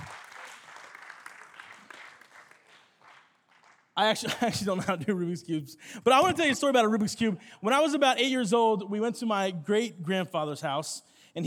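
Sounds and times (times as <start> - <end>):
audience applause: 0.0 - 4.0
laughter: 4.0 - 5.5
speech: 4.0 - 11.4.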